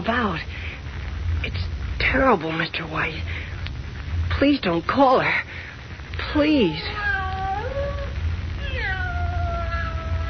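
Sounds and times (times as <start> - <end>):
speech: 0.0 - 0.6, 1.4 - 3.4, 4.4 - 5.7, 6.3 - 7.0
cat meowing plaintively: 6.5 - 10.2.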